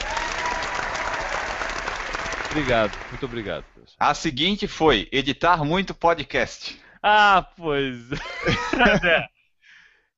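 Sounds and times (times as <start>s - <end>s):
audience applause: 0.0s - 3.7s
speech: 2.5s - 9.3s
laughter: 8.1s - 9.3s.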